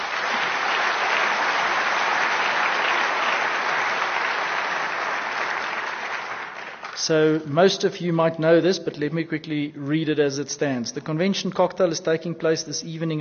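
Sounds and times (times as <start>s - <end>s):
audience applause: 0.0s - 7.1s
speech: 7.0s - 13.1s.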